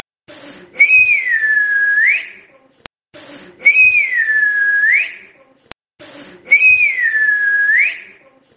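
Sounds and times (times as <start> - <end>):
whistle: 0.8 - 2.4, 3.7 - 5.2, 6.5 - 8.1.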